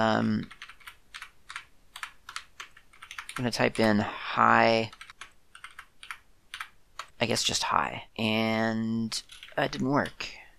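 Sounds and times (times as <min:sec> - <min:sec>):
speech: 0:00.0 - 0:00.6, 0:03.4 - 0:05.0, 0:07.2 - 0:10.4
typing code on a computer keyboard: 0:00.4 - 0:03.8, 0:04.9 - 0:07.2, 0:09.2 - 0:10.2.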